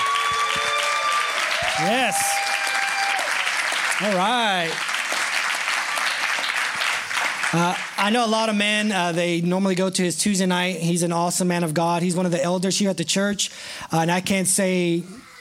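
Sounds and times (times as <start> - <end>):
church audience applause: 0.0 - 8.2
speech: 1.8 - 2.3, 4.0 - 4.9, 7.5 - 15.2.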